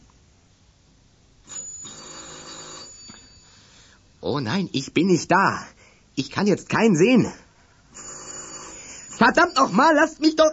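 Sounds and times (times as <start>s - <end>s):
electric doorbell ringing: 1.5s - 3.8s, 8.0s - 10.2s
speech: 4.2s - 7.4s, 9.2s - 10.5s.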